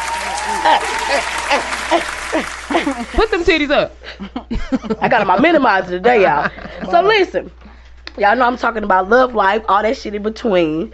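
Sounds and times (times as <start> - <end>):
audience clapping: 0.0 - 3.5
laughter: 0.0 - 7.3
speech: 0.6 - 7.6, 8.2 - 10.9.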